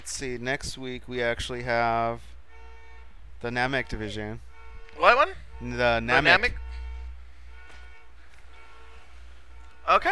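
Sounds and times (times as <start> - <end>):
low rumble: 0.0 - 10.1
speech: 0.2 - 2.4, 3.4 - 6.6, 9.9 - 10.1
car alarm: 2.2 - 10.1.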